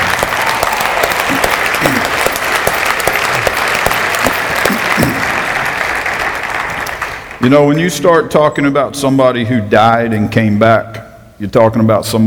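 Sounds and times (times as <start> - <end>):
audience applauding: 0.0 - 7.8
speech: 7.4 - 12.2.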